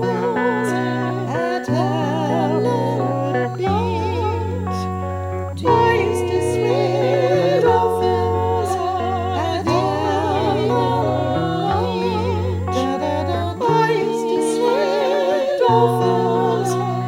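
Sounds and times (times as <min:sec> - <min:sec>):
guitar: 0:00.0 - 0:17.0
voices: 0:00.0 - 0:17.0.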